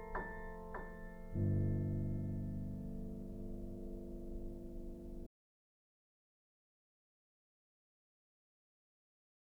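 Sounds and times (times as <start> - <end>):
piano: 0.0 - 5.3.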